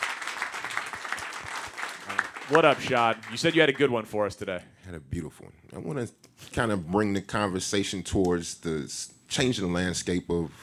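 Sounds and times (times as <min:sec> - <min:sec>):
round of applause: 0:00.0 - 0:04.0
speech: 0:02.5 - 0:10.6.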